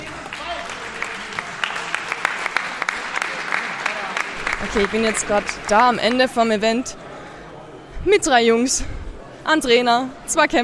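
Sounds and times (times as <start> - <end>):
audience applause: 0.0 - 6.4
speech: 4.6 - 7.0, 8.0 - 10.6.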